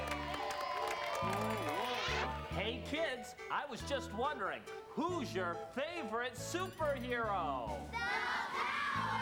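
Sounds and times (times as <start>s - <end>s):
crowd applause: 0.0s - 2.4s
speech: 2.6s - 9.1s.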